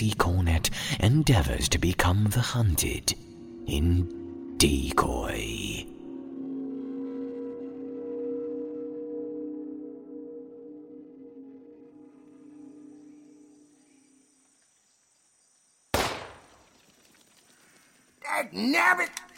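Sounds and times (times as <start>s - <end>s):
speech: 0.0s - 5.8s, 18.5s - 19.3s
low tonal hum: 3.2s - 14.5s
gunshot from a hunter shooting at squirrels among trees: 16.0s - 16.6s.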